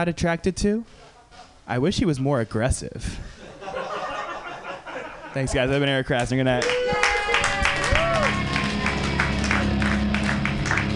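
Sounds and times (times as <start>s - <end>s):
speech: 0.0s - 3.4s, 5.3s - 6.9s
laughter: 3.4s - 5.8s
audience clapping: 5.6s - 10.9s.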